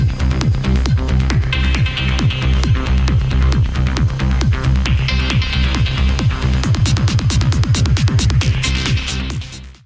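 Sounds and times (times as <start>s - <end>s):
electro music: 0.0s - 9.8s.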